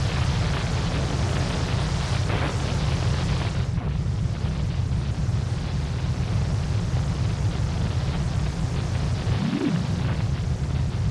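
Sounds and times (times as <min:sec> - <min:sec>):
shortwave radio static from a voltage controlled experiment: 0:00.1 - 0:11.0
heavy low rumble: 0:09.2 - 0:10.5
short rising tone: 0:09.3 - 0:10.2.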